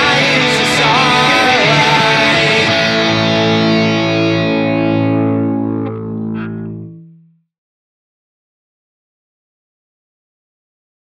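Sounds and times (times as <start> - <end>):
171 bpm music track: 0.0 - 7.4.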